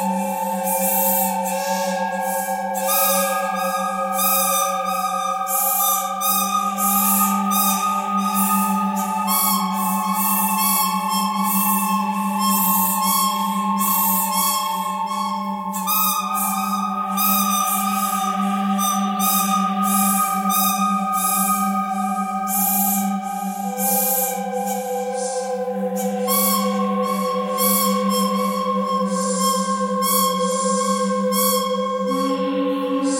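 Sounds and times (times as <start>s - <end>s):
pentatonic melody: 0.0s - 33.1s.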